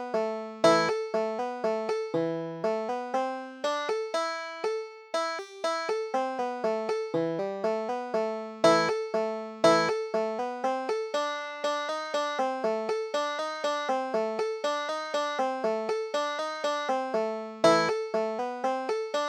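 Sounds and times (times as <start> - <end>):
banjo tune: 0.0 - 19.2.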